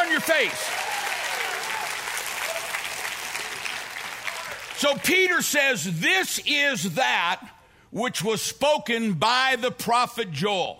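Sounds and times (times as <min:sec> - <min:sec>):
audience clapping: 0:00.0 - 0:05.4
speech: 0:00.2 - 0:00.8, 0:04.8 - 0:10.7.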